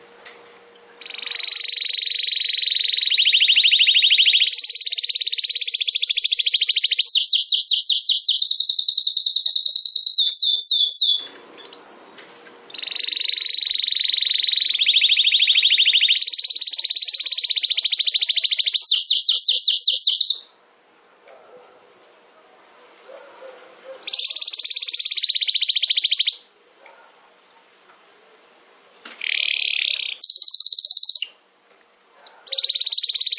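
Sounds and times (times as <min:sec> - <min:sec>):
domestic canary song: 0:00.0 - 0:20.6, 0:21.2 - 0:31.5, 0:32.1 - 0:33.3.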